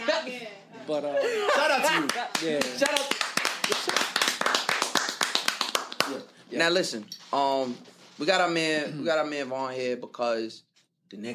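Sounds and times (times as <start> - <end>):
speech: 0.2 - 4.1, 6.1 - 11.3
round of applause: 1.9 - 6.2.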